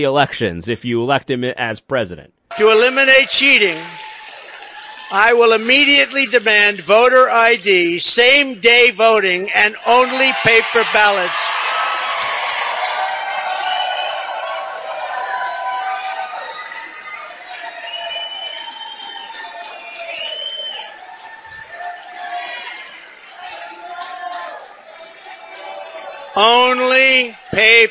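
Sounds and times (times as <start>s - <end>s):
speech: 0.0s - 4.1s, 5.1s - 11.7s, 26.4s - 27.8s
large crowd cheering and shouting at a rally: 2.5s - 27.8s.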